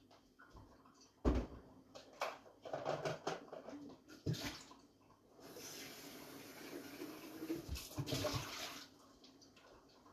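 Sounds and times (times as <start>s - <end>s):
sharp kitchen knocks and clatters: 1.2s - 3.8s
hissing wash of pouring or sizzling: 5.3s - 9.1s.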